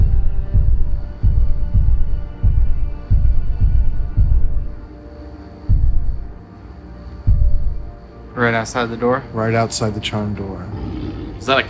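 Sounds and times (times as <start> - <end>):
loud rumbling dragon-like footstep sound effect: 0.0 - 4.7, 5.7 - 6.3, 7.3 - 7.8
speech: 8.4 - 10.8, 11.4 - 11.6.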